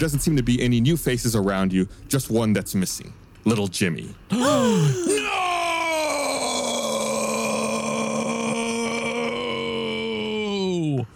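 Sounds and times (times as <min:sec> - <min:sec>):
speech: 0:00.0 - 0:05.4
yell turning into a burp: 0:04.4 - 0:10.7.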